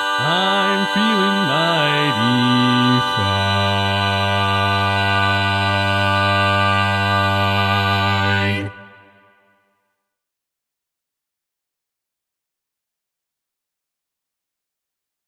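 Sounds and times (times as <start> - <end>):
barbershop bass voice singing: 0.2 - 8.7.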